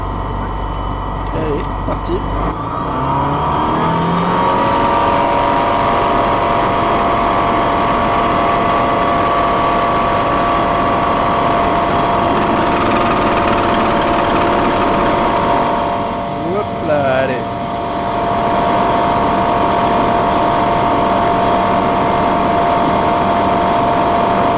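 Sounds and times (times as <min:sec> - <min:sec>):
small airplane engine revving for takeoff: 0:00.2 - 0:24.5.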